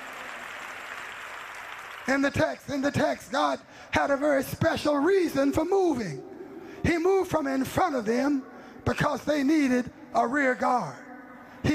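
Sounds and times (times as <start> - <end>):
audience clapping hands: 0.0 - 2.9
speech: 2.1 - 11.0.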